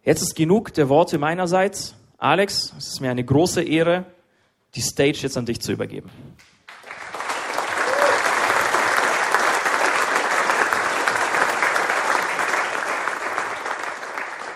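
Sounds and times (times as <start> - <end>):
speech: 0.0 - 6.5
audience clapping: 6.4 - 14.5.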